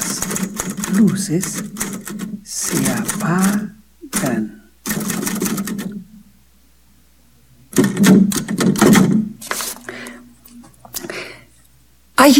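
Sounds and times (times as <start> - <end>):
typewriter clatter: 0.0 - 6.0, 7.8 - 9.8
speech: 0.9 - 1.8, 2.5 - 4.6.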